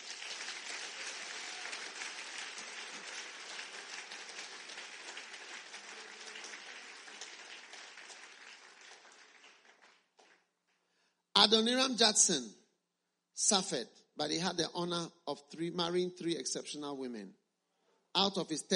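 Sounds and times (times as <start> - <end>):
church congregation clapping for Jesus during a sermon: 0.0 - 10.9
speech: 11.4 - 12.6, 13.4 - 17.4, 18.1 - 18.7.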